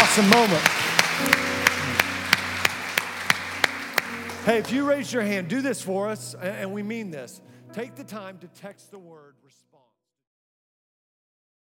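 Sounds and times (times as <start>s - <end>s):
audience rhythmic clapping: 0.0s - 5.4s
speech: 0.2s - 2.0s, 4.4s - 9.7s.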